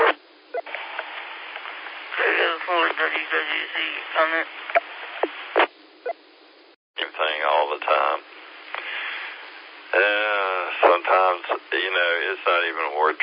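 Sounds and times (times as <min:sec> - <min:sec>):
ham radio clicks and squelch pops: 0:00.0 - 0:03.5, 0:04.2 - 0:05.7
ham radio transmission voices: 0:00.0 - 0:05.7, 0:07.0 - 0:13.2
speech: 0:02.5 - 0:04.8.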